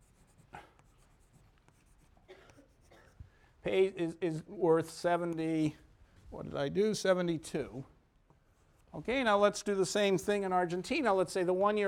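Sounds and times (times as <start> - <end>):
pen writing numbers in pink: 0.0 - 3.2
quiet hiss: 0.0 - 11.8
speech: 3.6 - 7.9, 8.9 - 11.8.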